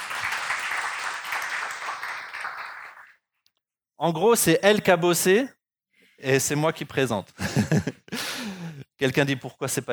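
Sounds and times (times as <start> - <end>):
audience applauding: 0.0 - 3.2
speech: 4.0 - 5.6, 6.2 - 8.1, 9.0 - 9.9.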